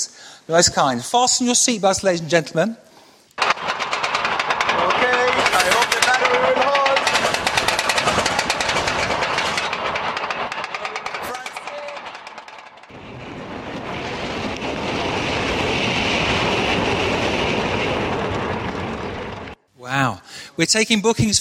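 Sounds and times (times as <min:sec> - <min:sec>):
speech: 0:00.0 - 0:02.9, 0:20.6 - 0:21.4
roller coaster ride: 0:03.4 - 0:19.6.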